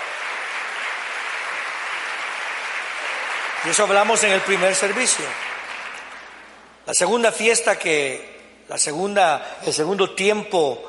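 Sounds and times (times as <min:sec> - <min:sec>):
audience applauding: 0:00.0 - 0:06.6
speech: 0:03.6 - 0:05.6, 0:06.9 - 0:10.8.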